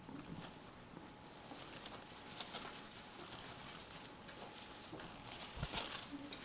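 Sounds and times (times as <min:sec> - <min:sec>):
pages of books being turned: 0:00.0 - 0:06.4.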